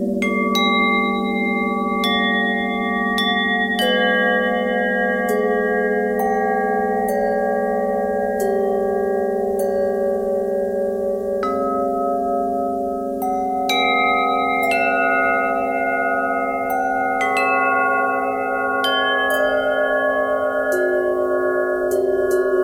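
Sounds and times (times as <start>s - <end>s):
bell with bent and twisted pitch: 0.2s - 22.6s.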